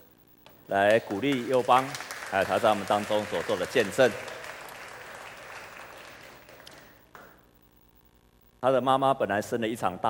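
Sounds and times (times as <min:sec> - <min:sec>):
speech: 0:00.7 - 0:04.3, 0:08.6 - 0:10.0
audience applause: 0:00.8 - 0:07.0.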